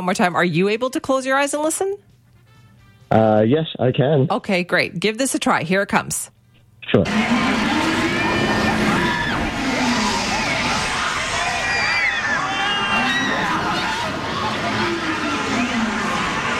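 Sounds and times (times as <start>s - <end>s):
speech: 0.0s - 2.1s, 3.1s - 7.8s
Beast roller coaster train rumbling: 7.0s - 16.5s
riders screaming on the Beast roller coaster at Playland: 7.1s - 16.5s.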